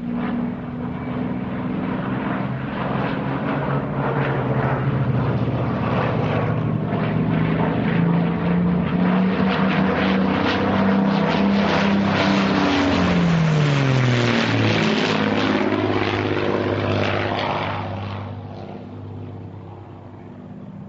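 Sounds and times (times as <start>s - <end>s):
Mosquito propeller warplane fly-past: 0.0s - 20.8s.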